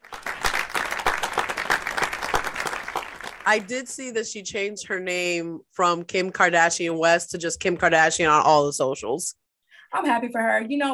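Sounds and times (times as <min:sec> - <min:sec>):
applause from a small group: 0:00.0 - 0:03.9
speech: 0:03.4 - 0:10.9.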